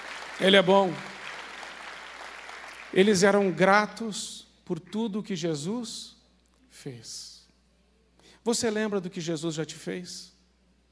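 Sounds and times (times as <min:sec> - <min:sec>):
audience applauding: 0:00.0 - 0:03.6
speech: 0:00.4 - 0:01.1, 0:02.9 - 0:06.2, 0:06.8 - 0:07.3, 0:08.4 - 0:10.3.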